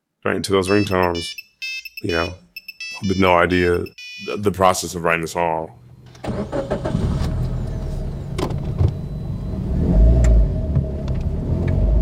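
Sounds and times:
speech: 0:00.2 - 0:02.4, 0:03.0 - 0:07.0
car engine rumble inside a moving car: 0:05.7 - 0:12.0.

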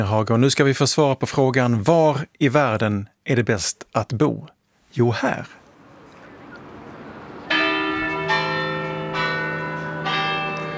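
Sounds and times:
speech: 0:00.0 - 0:05.6
church bells ringing in central Copenhagen, Rådhusplatsen: 0:05.8 - 0:10.7.

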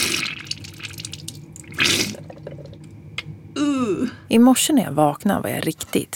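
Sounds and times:
nasal rinse with salt water: 0:00.0 - 0:02.5
salt water trickling and dripping into a sink: 0:00.0 - 0:02.9
speech: 0:04.0 - 0:06.1.

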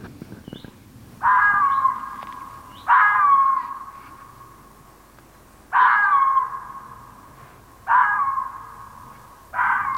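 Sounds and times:
female red fox barking: 0:01.2 - 0:04.2, 0:05.7 - 0:06.9, 0:07.8 - 0:08.8, 0:09.5 - 0:09.9.

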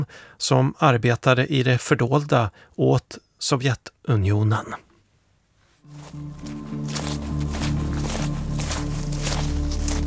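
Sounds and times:
speech: 0:00.0 - 0:04.8, 0:05.9 - 0:07.0
footsteps crunching through dry fallen leaves: 0:05.8 - 0:10.0
steady sustained tonal music bed: 0:05.9 - 0:10.0.

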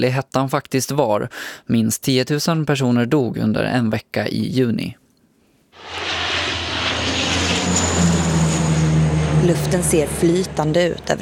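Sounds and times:
speech: 0:00.0 - 0:05.0, 0:09.4 - 0:11.1
firefighting aircraft engine roaring overhead: 0:05.8 - 0:11.1.

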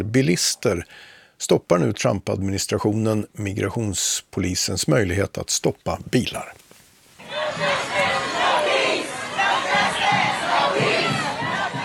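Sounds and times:
speech: 0:00.0 - 0:06.6
protest crowd chanting: 0:07.2 - 0:11.8.

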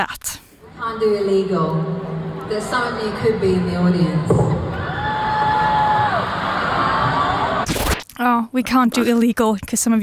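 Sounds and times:
speech: 0:00.0 - 0:04.6, 0:08.2 - 0:10.0
audience booing: 0:04.6 - 0:07.7.

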